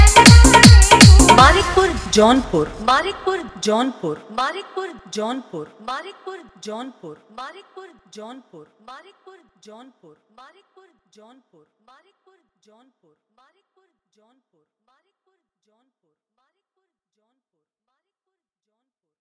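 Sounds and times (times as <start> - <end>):
bhakti hard bass music mix: 0.0 - 3.1.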